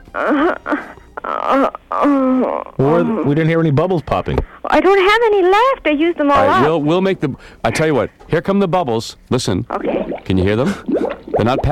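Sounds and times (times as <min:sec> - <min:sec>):
woman moaning: 0:00.1 - 0:03.3
speech: 0:00.2 - 0:00.7, 0:02.8 - 0:11.7.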